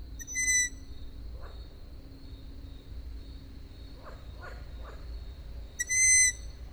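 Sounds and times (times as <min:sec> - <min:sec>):
owl giving loud high whistled calls at Židlochovice: 0:00.2 - 0:00.8, 0:05.8 - 0:06.5.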